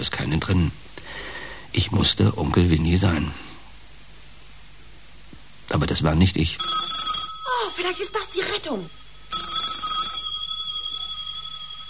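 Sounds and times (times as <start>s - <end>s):
speech: 0.0s - 0.8s, 1.8s - 3.5s, 5.7s - 6.9s, 7.6s - 9.5s
telephone bell ringing: 6.6s - 11.8s.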